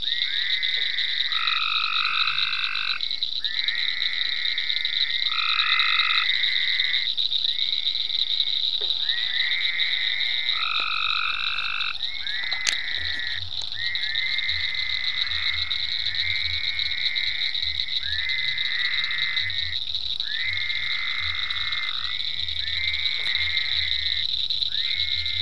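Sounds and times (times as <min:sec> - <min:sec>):
frogs calling in ponds on a permaculture farm: 0:00.0 - 0:25.4.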